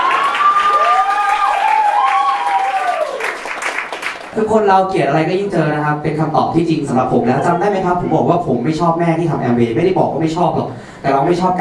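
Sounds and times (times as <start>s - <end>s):
audience applause: 0.0s - 4.4s
speech: 4.4s - 11.5s.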